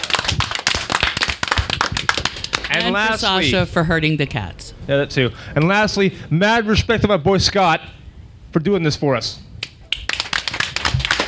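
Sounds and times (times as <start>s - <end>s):
audience clapping at a live panel show: 0.0s - 3.4s, 9.6s - 11.2s
speech: 2.8s - 9.4s.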